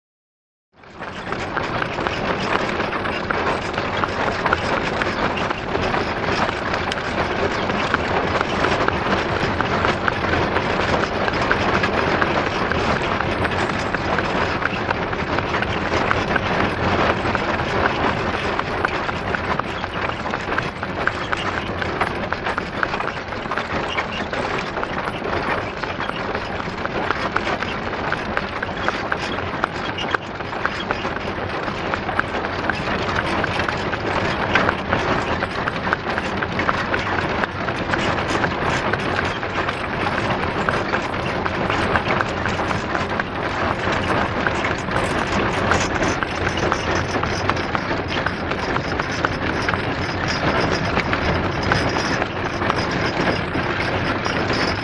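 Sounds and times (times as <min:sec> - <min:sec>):
pony cart carriage starting away: 0:00.8 - 0:54.8.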